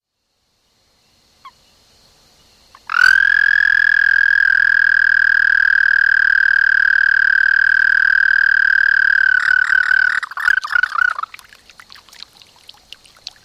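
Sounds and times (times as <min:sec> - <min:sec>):
American toad Anaxyrus americanus trilling: 0:02.8 - 0:11.4.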